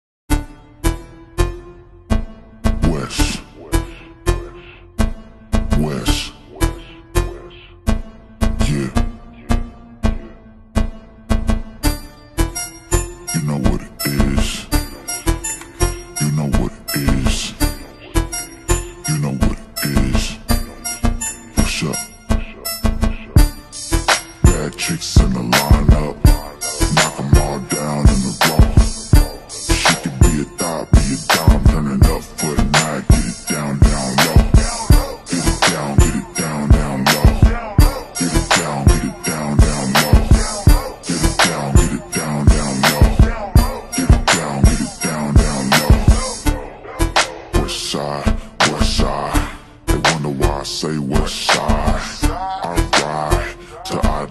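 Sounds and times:
slowed reverb music: 0:00.3 - 0:54.3.

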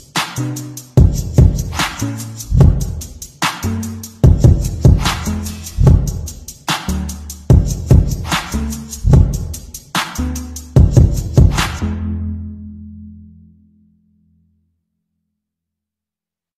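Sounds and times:
slowed cover song: 0:00.0 - 0:12.8.

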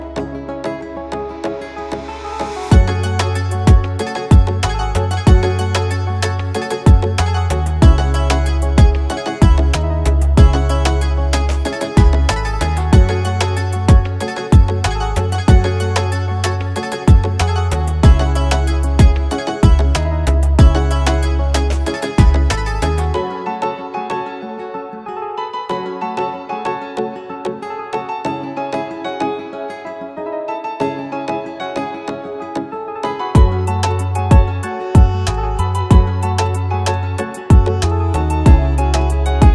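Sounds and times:
oriental dancehall type beat instrumental: 0:02.4 - 0:23.2, 0:33.4 - 0:39.5.

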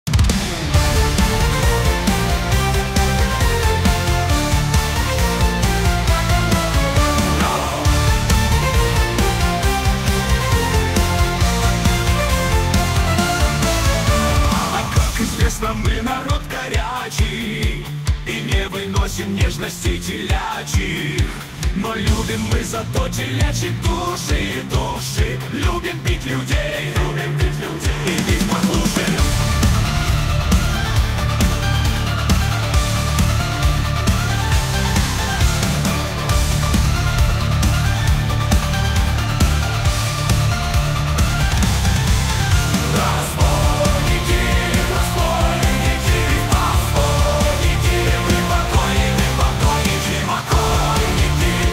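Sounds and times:
pirate metal song: 0:00.0 - 0:51.7.

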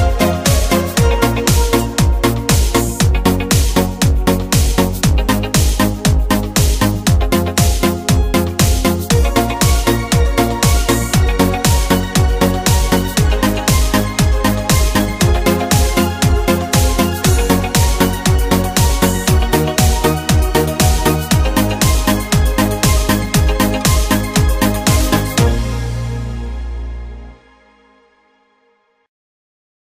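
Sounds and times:
80s euro disco instrumental music in Korg Pa4X style: 0:00.0 - 0:28.0.

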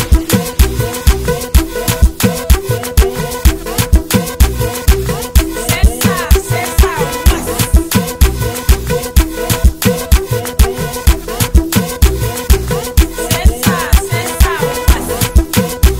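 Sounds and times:
African drums: 0:00.0 - 0:15.9
Azeri bass music: 0:00.0 - 0:15.9.

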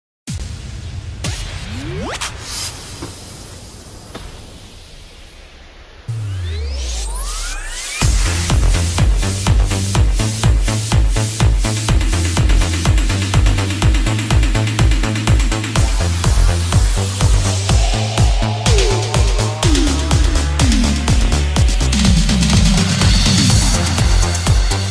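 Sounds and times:
dance music: 0:06.1 - 0:24.9.

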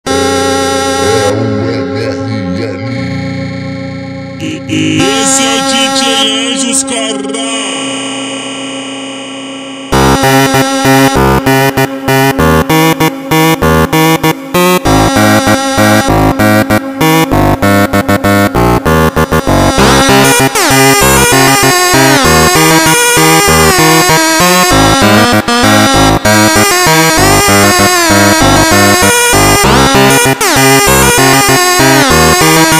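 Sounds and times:
super slowed instrumental music: 0:00.1 - 0:32.7.

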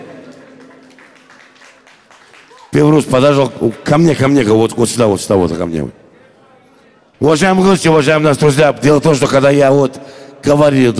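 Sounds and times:
applause from guests at a gathering: 0:00.0 - 0:03.7
speech: 0:02.8 - 0:06.0, 0:07.2 - 0:10.9.

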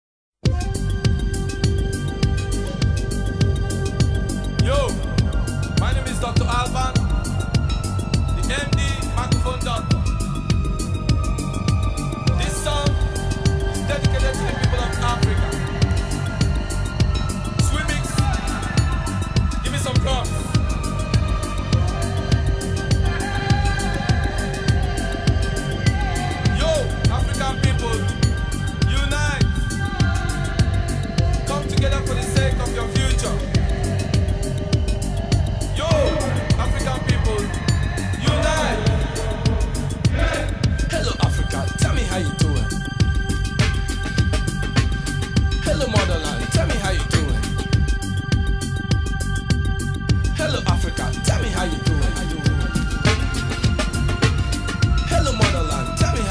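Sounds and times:
bleep bass music: 0:00.4 - 0:56.2.

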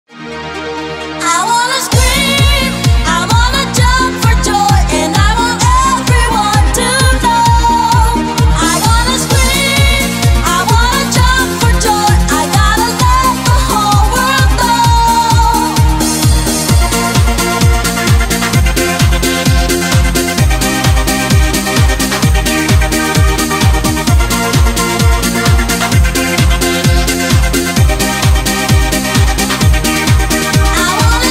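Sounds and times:
shuffle dance remix music: 0:00.1 - 0:31.2.

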